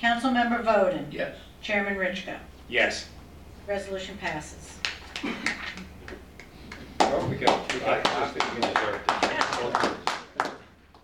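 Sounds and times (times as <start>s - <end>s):
speech: 0.0s - 5.9s, 7.1s - 10.5s
few people clapping: 4.3s - 11.0s.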